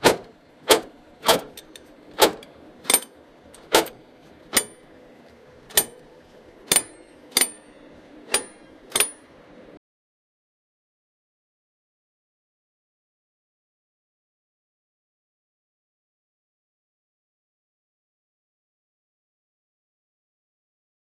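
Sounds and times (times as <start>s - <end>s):
typical mechanic workshop noise: 0.0s - 9.8s.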